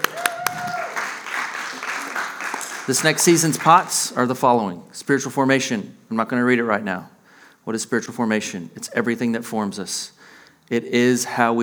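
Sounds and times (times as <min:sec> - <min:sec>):
audience clapping: 0:00.0 - 0:04.2
speech: 0:02.9 - 0:11.6.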